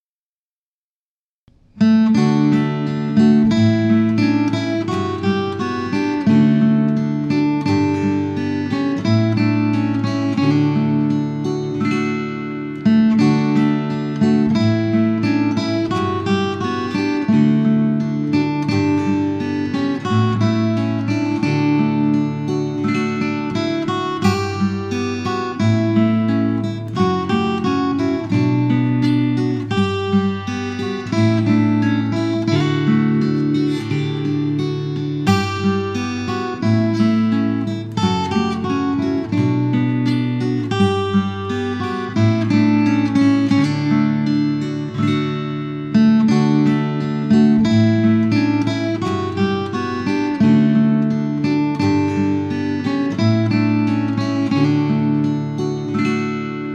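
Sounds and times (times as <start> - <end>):
acoustic guitar: 1.5 - 56.7.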